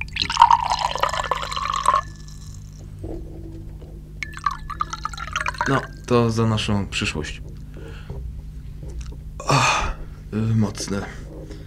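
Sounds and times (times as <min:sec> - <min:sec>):
drink being poured into glasses: 0:00.0 - 0:02.8, 0:04.2 - 0:06.1
glass clinking: 0:00.0 - 0:07.6
speech: 0:05.7 - 0:07.5, 0:10.4 - 0:11.2.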